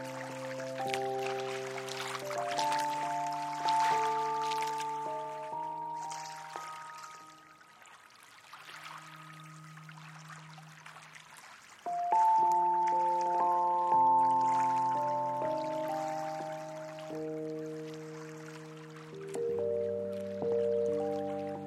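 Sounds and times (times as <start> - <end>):
piano: 0.0 - 21.6
watery lapping and dripping textures: 0.0 - 21.6.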